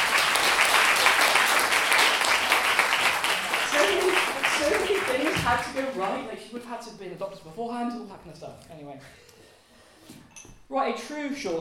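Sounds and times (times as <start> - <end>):
applause: 0.0 - 6.2
speech: 5.5 - 9.3, 10.7 - 11.5.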